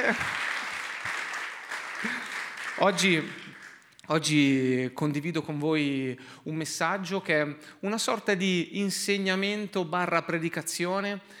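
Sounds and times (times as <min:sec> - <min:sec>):
audience applause: 0:00.0 - 0:03.9
speech: 0:00.1 - 0:00.4, 0:02.8 - 0:03.4, 0:04.1 - 0:11.3.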